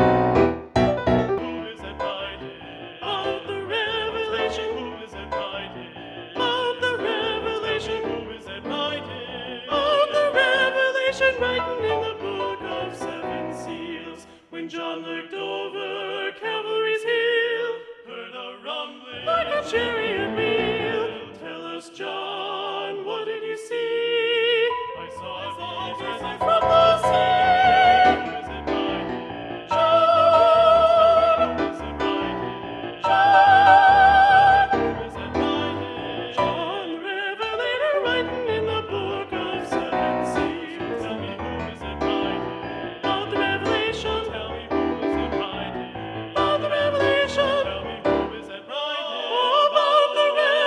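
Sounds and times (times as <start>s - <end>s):
choir with predominant second soprano: 0.2s - 50.6s.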